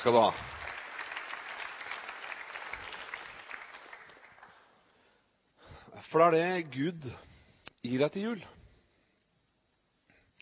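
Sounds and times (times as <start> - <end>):
speech: 0.0 - 0.5, 6.1 - 8.6
audience applause: 0.0 - 4.7.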